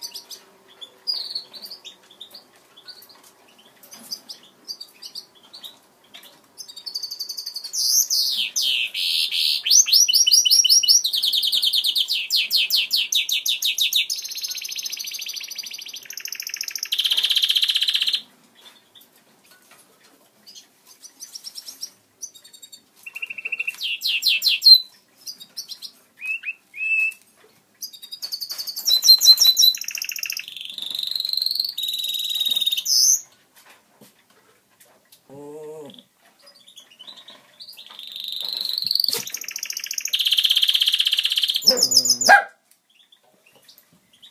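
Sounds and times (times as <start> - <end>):
greenfinch mule: 0.0 - 33.3, 35.3 - 44.3.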